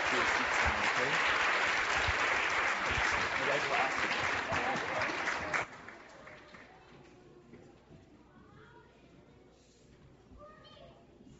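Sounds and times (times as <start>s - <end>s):
audience applause: 0.0s - 6.8s
speech: 3.6s - 5.0s.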